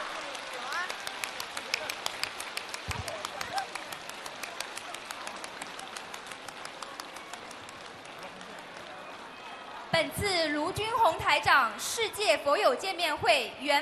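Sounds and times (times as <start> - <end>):
audience applause: 0.0 - 9.9
speech: 10.0 - 13.8.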